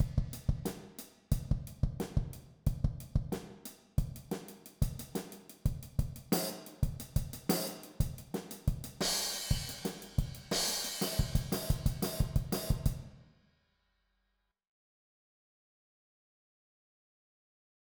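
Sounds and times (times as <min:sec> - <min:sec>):
drum set playing in mixed meter: 0:00.0 - 0:13.1.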